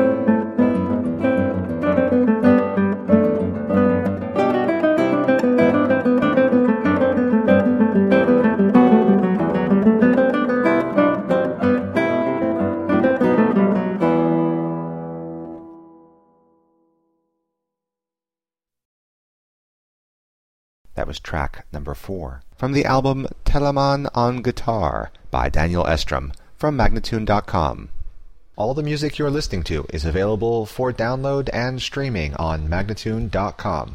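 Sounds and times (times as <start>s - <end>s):
vivace guitar playing: 0.0s - 16.8s
person speaking: 20.9s - 28.0s, 28.6s - 33.9s.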